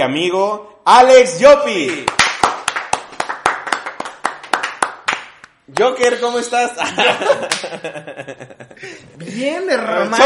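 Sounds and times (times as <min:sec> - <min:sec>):
speech: 0:00.0 - 0:02.2, 0:05.7 - 0:10.2
applause: 0:01.8 - 0:06.0
laughter: 0:06.7 - 0:09.4.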